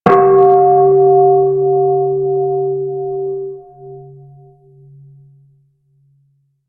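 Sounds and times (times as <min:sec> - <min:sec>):
bell: 0:00.1 - 0:05.4.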